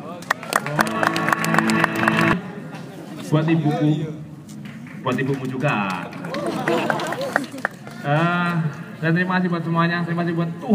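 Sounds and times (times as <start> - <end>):
audience clapping at a university arts-stage event: 0.2 - 2.4, 4.6 - 8.0
sustained musical tones: 0.6 - 2.6
speech: 3.3 - 4.3, 5.0 - 6.1, 8.0 - 10.7.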